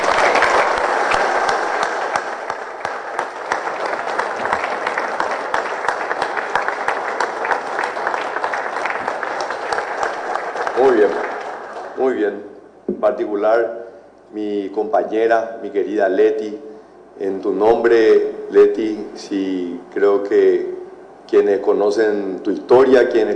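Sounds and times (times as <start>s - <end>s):
applause: 0.0s - 12.4s
speech: 12.2s - 20.7s, 21.3s - 23.3s.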